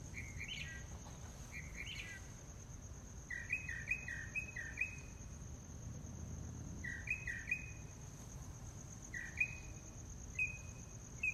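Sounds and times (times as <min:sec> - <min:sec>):
mockingbird song: 0:00.0 - 0:02.3, 0:03.3 - 0:05.1, 0:06.8 - 0:07.8, 0:09.1 - 0:09.7, 0:10.4 - 0:11.3
insect whine: 0:00.0 - 0:11.3.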